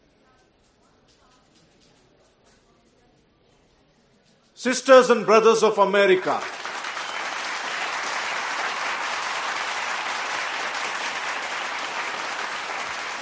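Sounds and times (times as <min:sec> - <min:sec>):
speech: 0:04.6 - 0:06.6
audience applause after a speaker's opening words on stage: 0:05.6 - 0:13.2.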